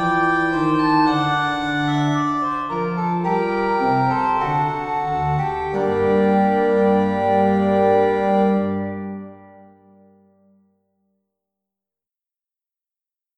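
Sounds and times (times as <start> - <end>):
organ bourree in B flat major: 0.0 - 10.0.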